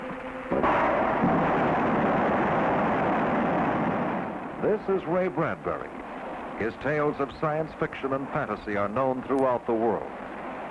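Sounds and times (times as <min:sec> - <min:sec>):
rocket engine test firing: 0:00.5 - 0:08.6
speech: 0:04.7 - 0:06.0, 0:06.6 - 0:10.2.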